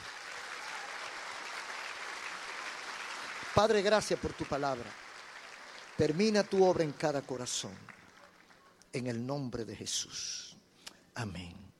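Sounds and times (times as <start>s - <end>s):
audience applauding: 0.0s - 8.6s
speech: 3.6s - 5.0s, 6.0s - 8.0s, 8.9s - 10.6s, 11.2s - 11.6s.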